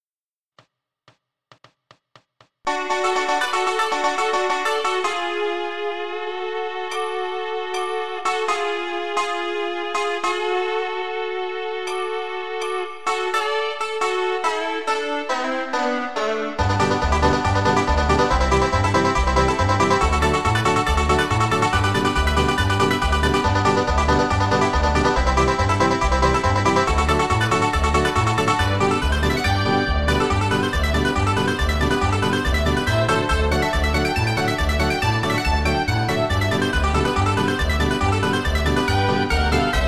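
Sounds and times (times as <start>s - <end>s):
bluegrass backing track: 2.7s - 39.8s.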